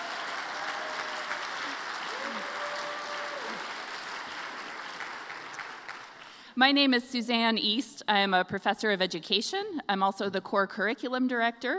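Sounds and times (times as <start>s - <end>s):
audience applause: 0.0s - 6.4s
speech: 6.6s - 11.7s.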